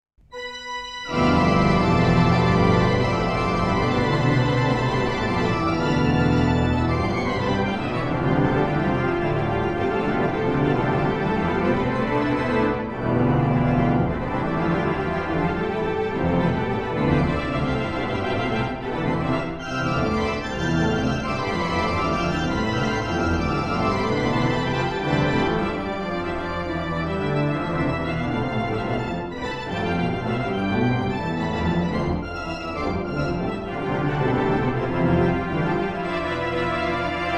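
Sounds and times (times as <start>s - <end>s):
organ playing in Iceland: 0.3s - 37.3s.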